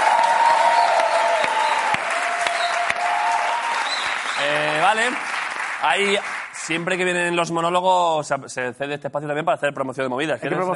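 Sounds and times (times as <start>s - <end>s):
audience applause: 0.0s - 7.0s
speech: 4.9s - 10.7s.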